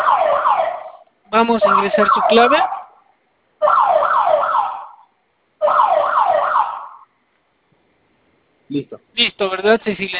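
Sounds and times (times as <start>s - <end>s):
alarm system siren warbling: 0.0s - 3.0s, 3.6s - 7.1s
speech: 1.3s - 2.8s, 8.7s - 10.1s.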